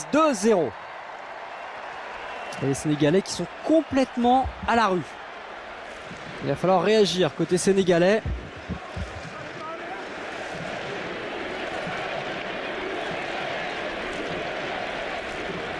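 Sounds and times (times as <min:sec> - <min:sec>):
speech: 0:00.0 - 0:00.8, 0:02.6 - 0:05.2, 0:06.4 - 0:08.8
stadium crowd roar at a football match against Senegal: 0:00.0 - 0:15.7
crowd chanting: 0:08.3 - 0:15.7.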